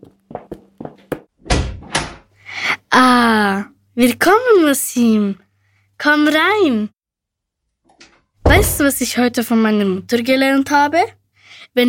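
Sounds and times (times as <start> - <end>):
door being opened: 1.4 - 2.2
speech: 2.9 - 5.4, 6.0 - 7.0, 8.5 - 11.8.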